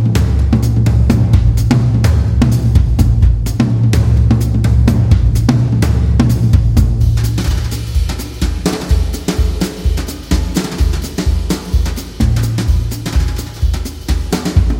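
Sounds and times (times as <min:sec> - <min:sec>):
jazz drums: 0:00.0 - 0:14.7.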